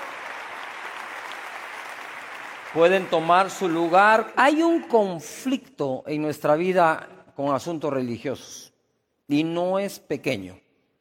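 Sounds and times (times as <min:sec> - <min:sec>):
audience applause: 0:00.0 - 0:04.2
speech: 0:02.7 - 0:08.7, 0:09.3 - 0:10.6.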